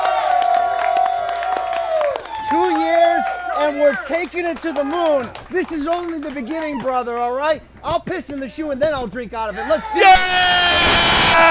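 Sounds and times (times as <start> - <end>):
live audience cheering: 0.0 - 5.4, 9.9 - 11.4
speech: 3.7 - 10.7
high sustained yell: 10.0 - 11.4.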